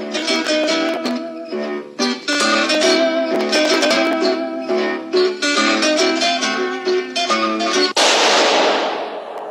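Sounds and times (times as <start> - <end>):
lively plucked zither music in a radio drama: 0.0 - 8.0
gunshot that kills Harry Lime, radio drama sound effect: 8.0 - 9.4.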